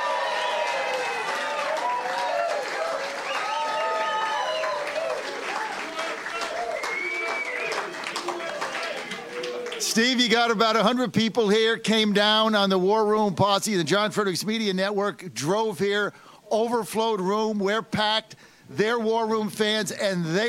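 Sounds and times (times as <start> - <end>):
cheering voices: 0.0 - 10.2
audience clapping welcoming a guest at a packed live event in Dana Point California: 0.0 - 10.8
speech: 10.0 - 20.4.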